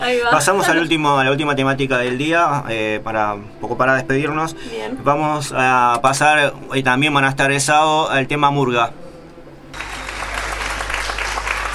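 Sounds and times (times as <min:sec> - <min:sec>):
speech: 0:00.1 - 0:09.0
spontaneous applause: 0:09.7 - 0:11.7.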